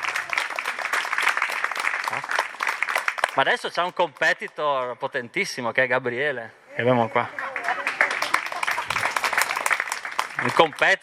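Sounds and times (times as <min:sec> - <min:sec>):
small group hand clapping: 0:00.0 - 0:04.6, 0:07.4 - 0:11.0
speech: 0:03.4 - 0:07.4, 0:10.4 - 0:11.0.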